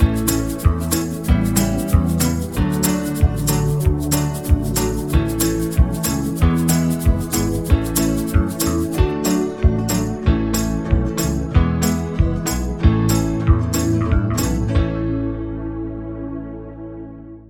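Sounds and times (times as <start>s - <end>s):
fast banjo backing track: 0.0s - 16.2s.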